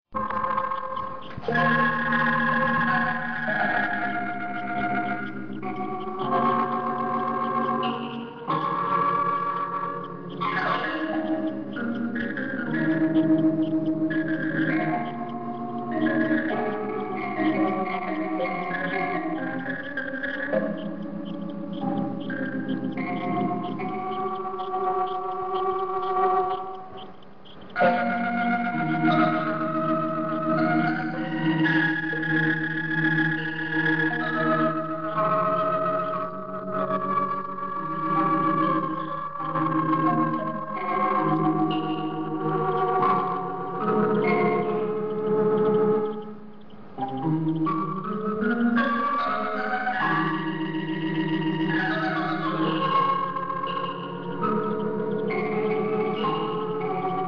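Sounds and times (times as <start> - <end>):
organ: 0.1 - 57.2.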